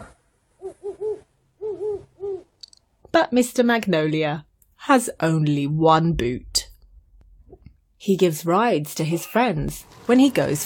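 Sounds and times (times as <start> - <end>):
owl hooting: 0.6 - 2.5
speech: 3.1 - 6.5, 8.0 - 10.6.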